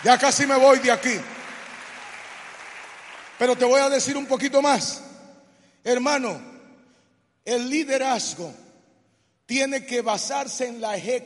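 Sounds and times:
speech: 0.0s - 1.4s, 3.4s - 5.1s, 5.8s - 6.5s, 7.4s - 8.6s, 9.5s - 11.2s
audience applause: 0.0s - 4.0s.

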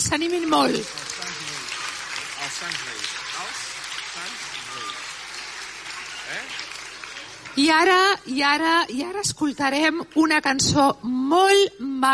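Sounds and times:
speech: 0.0s - 1.0s, 2.5s - 3.6s, 6.3s - 6.7s, 7.6s - 12.1s
crowd clapping: 0.0s - 8.3s.

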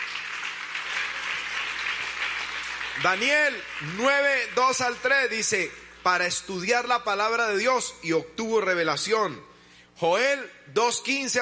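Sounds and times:
audience applause: 0.0s - 4.6s
speech: 3.0s - 11.4s.

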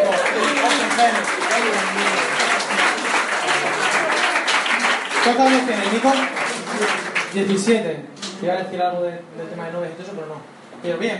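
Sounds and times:
audience applause: 0.0s - 7.7s
speech: 1.0s - 2.2s, 5.3s - 11.1s.

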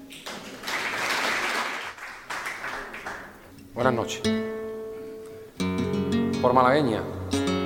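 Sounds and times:
audience applause: 0.1s - 3.4s
speech: 3.8s - 4.5s, 6.4s - 7.5s.

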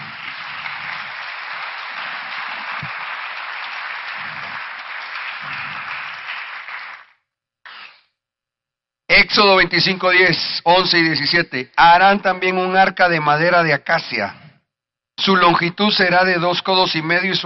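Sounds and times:
audience clapping: 0.0s - 7.9s
speech: 9.2s - 14.4s, 15.2s - 17.4s.

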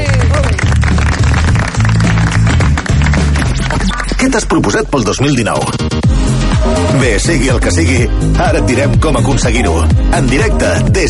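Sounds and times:
audience applause: 0.0s - 3.9s
speech: 4.3s - 6.1s, 6.9s - 11.0s.

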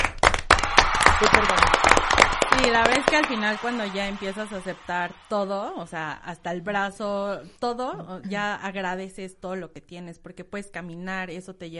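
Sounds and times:
applause: 0.0s - 5.9s
speech: 1.2s - 1.8s, 2.6s - 11.7s.

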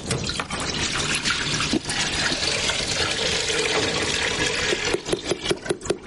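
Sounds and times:
milk pouring into a pot: 0.2s - 5.8s.

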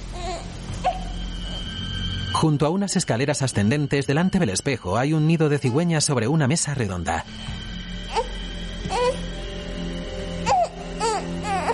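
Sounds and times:
baby crying in a stork's nest on a round table: 0.1s - 1.6s, 8.1s - 9.4s, 10.4s - 11.7s
speech: 2.4s - 7.6s.

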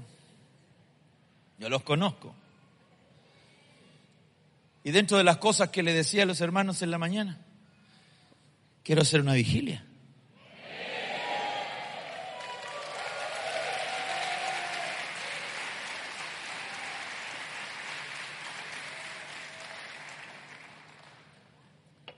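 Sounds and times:
speech: 1.6s - 2.4s, 4.8s - 7.5s, 8.8s - 9.9s
audience applause: 11.2s - 21.4s.

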